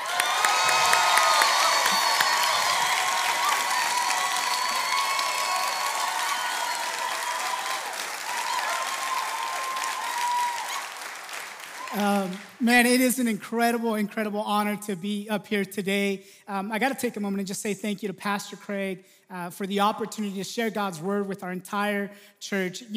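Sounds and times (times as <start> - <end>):
scattered whoops: 0.0 - 12.0
church congregation applauding to welcome a pastor: 0.0 - 13.3
speech: 12.0 - 22.9.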